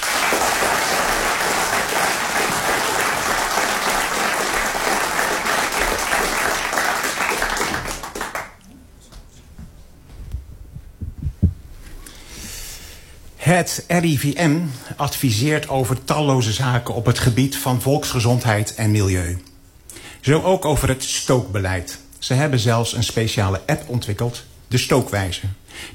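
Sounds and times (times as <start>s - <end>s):
audience applause: 0.0s - 8.6s
speech: 13.5s - 19.5s, 20.2s - 25.9s.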